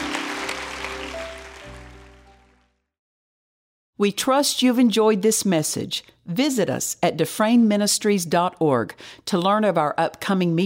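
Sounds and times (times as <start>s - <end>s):
audience hand clapping: 0.0s - 2.8s
speech: 4.0s - 10.6s.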